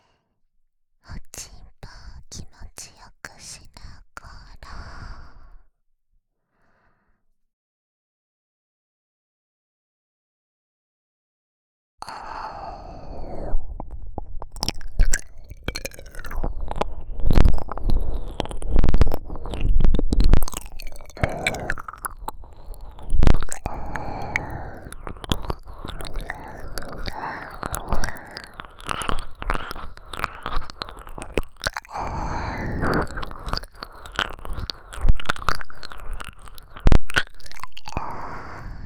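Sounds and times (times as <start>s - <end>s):
ear licking ASMR with binaural microphone: 13.8s - 38.8s.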